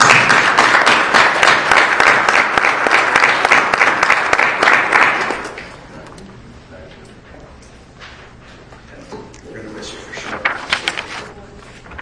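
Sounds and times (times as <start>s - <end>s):
round of applause: 0.0s - 5.7s.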